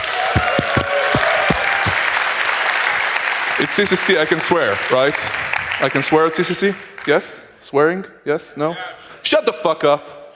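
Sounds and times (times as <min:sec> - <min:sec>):
crowd applause: 0:00.0 - 0:06.2
dull low thumps: 0:00.3 - 0:02.0
speech: 0:03.6 - 0:10.2.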